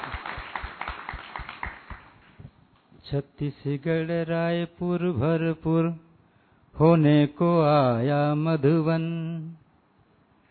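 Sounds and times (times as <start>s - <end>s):
audience clapping: 0.0s - 2.3s
speech: 3.1s - 6.0s, 6.8s - 9.6s.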